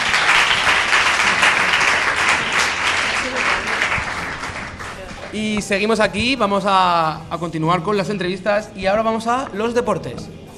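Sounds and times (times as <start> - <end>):
audience applause: 0.0 - 5.4
speech: 5.4 - 10.4.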